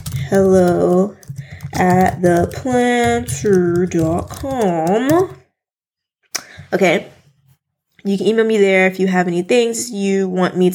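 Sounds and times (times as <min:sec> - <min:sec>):
fingers typing an email address on a computer keyboard: 0:00.0 - 0:05.4
speech: 0:00.3 - 0:01.2, 0:01.8 - 0:05.4, 0:06.7 - 0:07.1, 0:08.0 - 0:10.7.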